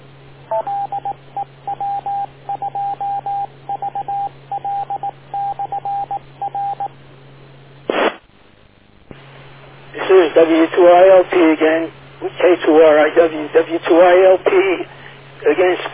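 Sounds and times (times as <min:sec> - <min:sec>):
speech: 0:00.5 - 0:00.9, 0:10.4 - 0:15.9
short electronic beep tones over radio: 0:00.5 - 0:06.9
burst of radio static: 0:07.8 - 0:15.9.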